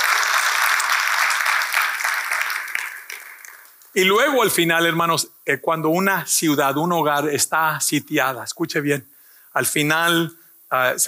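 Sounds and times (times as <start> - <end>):
audience applauding: 0.0 - 4.0
speech: 4.0 - 11.0.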